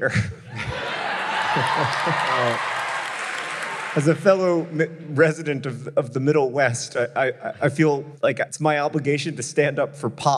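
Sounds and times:
speech: 0.0s - 0.6s, 1.5s - 2.7s, 3.9s - 10.3s
laughter: 0.0s - 5.4s, 7.0s - 8.0s
audience applause: 0.6s - 4.8s.

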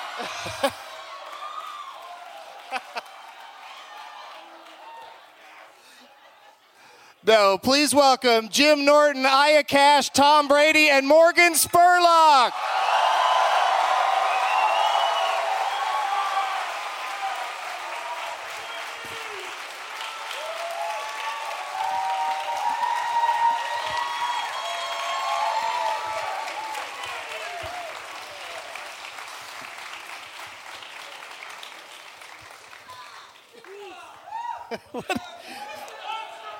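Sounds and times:
laughter: 0.0s - 1.0s, 2.6s - 3.2s, 5.4s - 7.0s, 34.4s - 36.5s
scattered crowd shouts and whoops: 0.0s - 5.8s, 12.5s - 28.6s, 33.8s - 36.5s
loud sustained crowd applause: 0.0s - 6.1s, 12.5s - 36.5s
speech: 0.2s - 0.9s, 2.7s - 3.1s, 7.2s - 12.8s.

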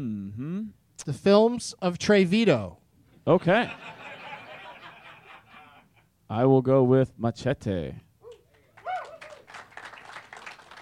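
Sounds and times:
speech: 1.0s - 4.0s, 6.3s - 8.0s
laughter: 3.4s - 6.1s
audience clapping: 8.3s - 10.8s.

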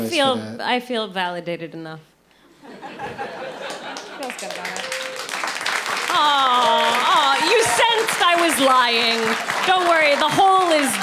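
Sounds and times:
speech: 0.0s - 2.1s, 4.2s - 5.0s, 6.2s - 11.0s
laughter: 2.6s - 4.4s
audience clapping: 3.4s - 11.0s
overlapping voices: 3.4s - 11.0s.

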